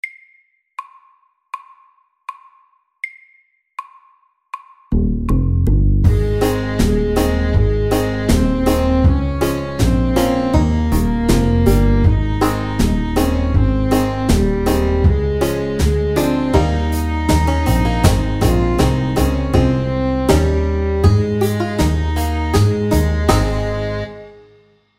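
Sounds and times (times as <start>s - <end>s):
slow music at 80 BPM: 5.0s - 24.8s.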